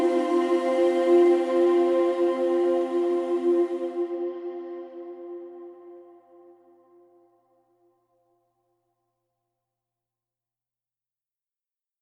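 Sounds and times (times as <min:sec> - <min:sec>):
choir singing: 0:00.0 - 0:06.6.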